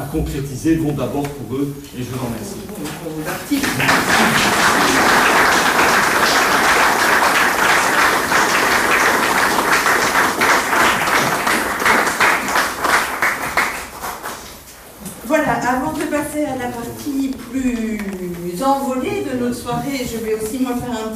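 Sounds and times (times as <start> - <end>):
speech: 0.1 - 5.2, 16.4 - 21.1
audience applause: 3.5 - 14.6.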